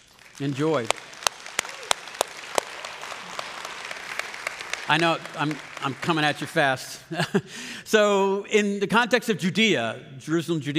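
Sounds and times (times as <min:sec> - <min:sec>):
sparse claps from a small audience: 0:00.0 - 0:06.7
speech: 0:00.4 - 0:01.1, 0:04.9 - 0:10.7.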